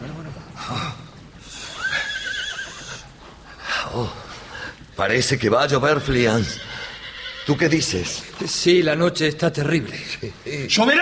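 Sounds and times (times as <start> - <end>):
horse neighing: 1.5 - 3.2, 5.8 - 8.2
speech: 3.9 - 4.2, 5.0 - 6.8, 7.5 - 11.0.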